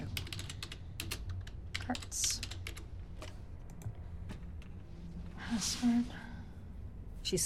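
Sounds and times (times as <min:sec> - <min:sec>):
computer keyboard typing a username: 0:00.0 - 0:04.0
low hum: 0:00.0 - 0:07.4
speech: 0:01.9 - 0:02.5, 0:05.5 - 0:06.2, 0:07.3 - 0:07.4.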